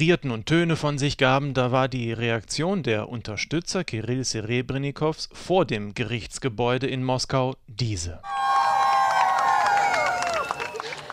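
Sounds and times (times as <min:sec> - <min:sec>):
speech: 0:00.0 - 0:08.6
crowd applause: 0:08.3 - 0:11.1.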